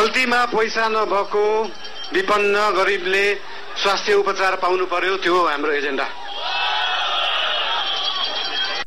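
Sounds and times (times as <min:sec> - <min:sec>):
speech: 0:00.0 - 0:06.5
crowd whistling at a speech by Prime Minister Balendra Shah: 0:01.0 - 0:03.9, 0:06.0 - 0:08.8
crowd applause and cheering at a speech by Prime Minister Balendra Shah: 0:06.1 - 0:08.8.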